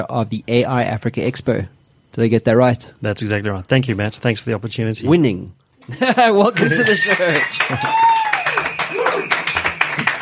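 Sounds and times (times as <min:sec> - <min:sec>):
speech: 0:00.0 - 0:08.2
canned crowd applause effect: 0:06.5 - 0:10.2
whistles and cheers: 0:06.6 - 0:10.2.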